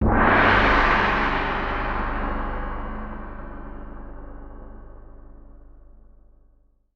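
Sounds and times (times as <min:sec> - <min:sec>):
gong: 0:00.0 - 0:06.4.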